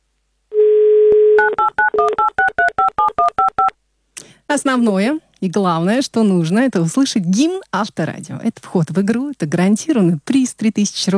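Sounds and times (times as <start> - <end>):
telephone dial tone: 0.5 - 3.7
dual-tone telephone keypad beeps: 1.4 - 3.7
speech: 4.5 - 11.1.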